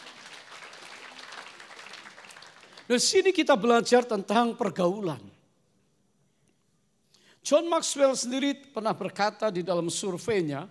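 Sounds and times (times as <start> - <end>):
applause: 0.0 - 3.2
speech: 2.9 - 5.4, 7.5 - 10.6.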